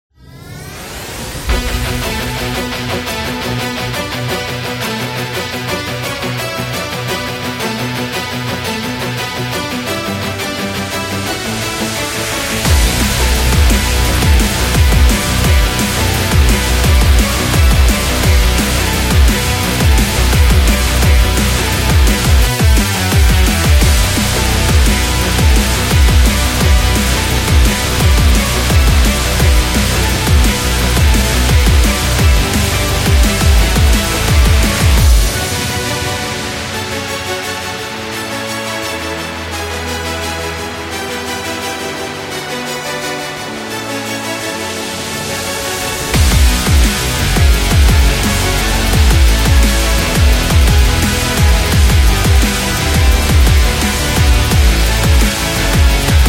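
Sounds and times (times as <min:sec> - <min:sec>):
epic energetic music: 0:00.3 - 0:56.2.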